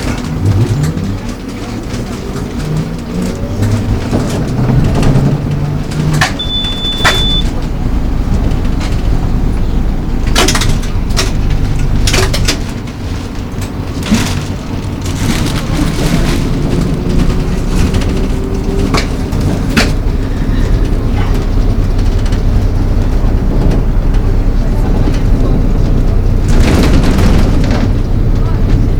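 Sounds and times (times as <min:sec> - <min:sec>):
people's voices: 0:00.0 - 0:28.9
trolleybus: 0:00.0 - 0:28.9.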